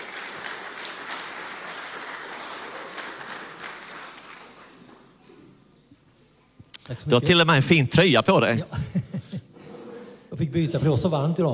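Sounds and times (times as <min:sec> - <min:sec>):
church congregation applause welcoming a speaker to the front: 0:00.0 - 0:05.2
speech: 0:06.9 - 0:09.0, 0:10.5 - 0:11.5
laughter: 0:08.5 - 0:09.7.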